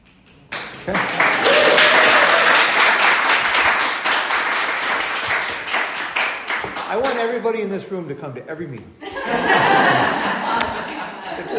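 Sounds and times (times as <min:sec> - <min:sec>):
audience applause in a town hall: 0:00.3 - 0:07.4
speech: 0:00.8 - 0:01.4, 0:07.1 - 0:10.8
laughter: 0:09.0 - 0:11.5.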